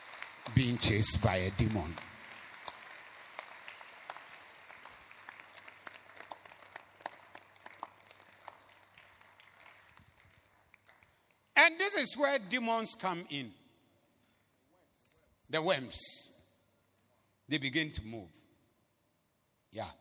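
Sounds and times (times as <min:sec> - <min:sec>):
audience clapping: 0:00.0 - 0:11.5
speech: 0:00.5 - 0:02.1, 0:12.1 - 0:13.6, 0:15.5 - 0:16.3, 0:17.5 - 0:18.4, 0:19.7 - 0:19.9.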